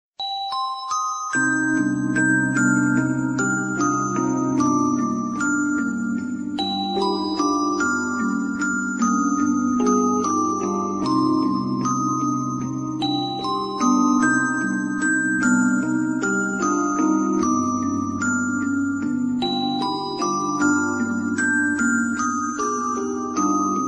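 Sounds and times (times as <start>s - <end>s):
music box melody: 0.2s - 23.8s.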